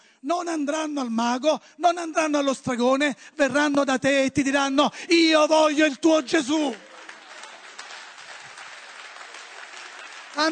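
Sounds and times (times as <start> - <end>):
speech: 0.2 - 6.9, 10.4 - 10.5
audience applauding: 6.4 - 10.5.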